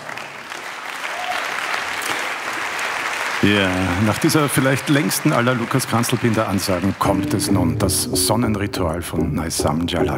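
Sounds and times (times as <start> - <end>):
audience applause: 0.0 - 7.9
speech: 3.4 - 10.1.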